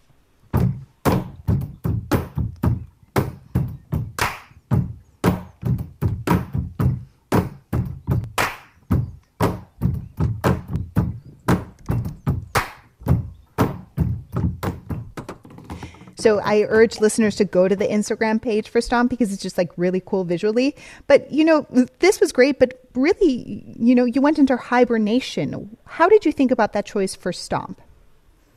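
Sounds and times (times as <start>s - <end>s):
drumming on tabletops: 0.5s - 18.0s
speech: 16.2s - 27.8s.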